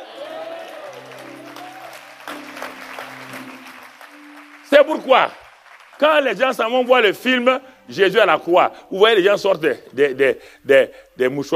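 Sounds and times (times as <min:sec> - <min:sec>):
people applauding: 0:00.0 - 0:07.5
speech: 0:04.7 - 0:05.4, 0:06.0 - 0:11.5.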